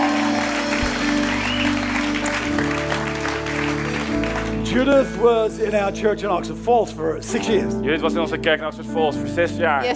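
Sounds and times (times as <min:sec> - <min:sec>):
audience applause: 0:00.0 - 0:05.3
speech: 0:04.8 - 0:09.9.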